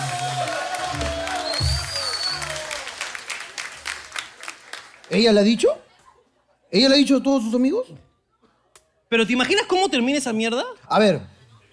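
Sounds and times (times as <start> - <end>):
applause: 0.0 - 5.4
speech: 5.1 - 5.8, 6.7 - 8.1, 9.1 - 11.3.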